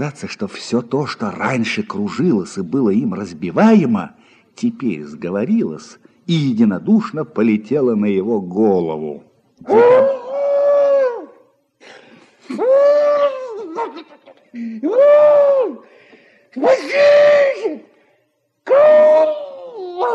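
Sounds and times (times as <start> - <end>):
speech: 0.0 - 10.3, 13.8 - 17.9, 18.7 - 20.1
man wailing and screaming in terror: 9.7 - 11.4, 12.5 - 14.0, 14.6 - 15.9, 16.6 - 17.9, 18.7 - 20.1
man gasping: 15.8 - 16.5.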